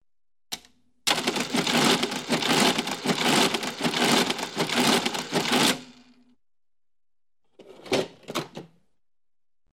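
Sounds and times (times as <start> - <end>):
cash register printing final receipt: 1.1 - 5.9.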